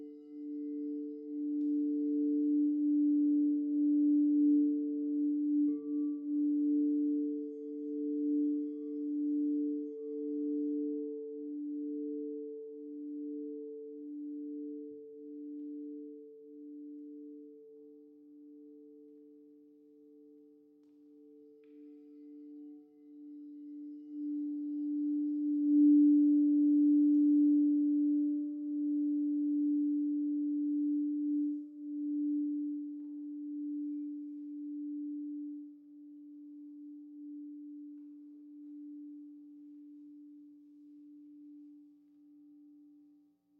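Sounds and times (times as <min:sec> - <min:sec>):
sound bath tone: 0:00.0 - 0:42.9.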